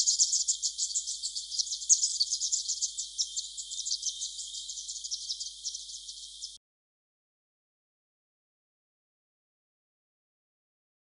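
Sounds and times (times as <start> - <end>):
yellow thornbill vocalizing: 0.0 - 6.6.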